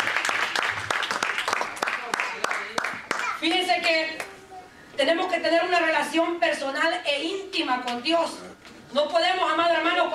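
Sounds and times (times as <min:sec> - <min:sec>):
audience clapping: 0:00.0 - 0:04.3
speech: 0:05.0 - 0:10.1.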